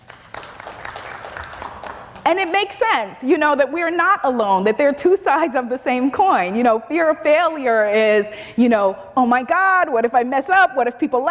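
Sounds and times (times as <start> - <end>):
audience clapping: 0.0 - 2.3
speech: 2.3 - 11.2.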